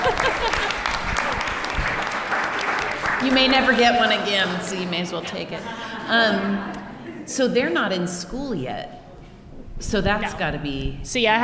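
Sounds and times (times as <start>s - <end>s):
laughter: 0.0s - 1.5s, 3.9s - 7.3s
audience applause: 0.0s - 5.0s
speech: 3.2s - 9.0s, 9.8s - 11.4s.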